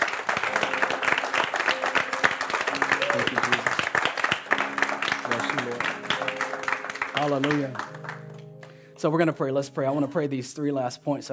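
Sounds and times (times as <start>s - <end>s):
audience applauding: 0.0s - 8.8s
speech: 7.2s - 8.0s, 9.0s - 11.3s.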